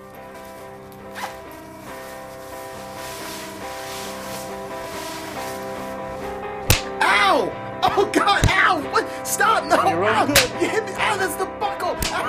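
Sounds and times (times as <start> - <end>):
zipper on a pair of pants being pulled down: 0.4 - 6.3
speech: 8.0 - 12.2.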